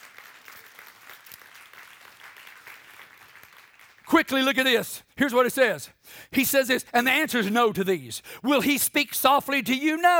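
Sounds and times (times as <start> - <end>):
audience clapping hands: 0.0 - 4.8
speech: 4.1 - 10.1.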